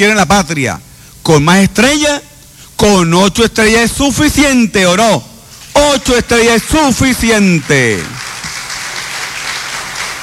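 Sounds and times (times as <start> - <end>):
speech: 0.0 - 8.2
crowd applause: 7.6 - 10.2.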